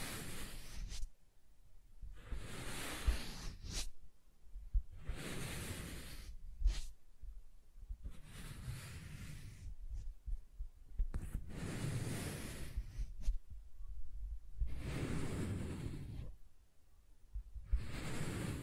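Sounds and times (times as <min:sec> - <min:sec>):
soft tracing strokes across a surface: 0:00.0 - 0:01.1, 0:02.2 - 0:04.0, 0:04.9 - 0:07.0, 0:08.0 - 0:10.0, 0:11.3 - 0:13.4, 0:14.6 - 0:16.4, 0:17.7 - 0:18.6
faint taps and thumps: 0:09.9 - 0:11.4.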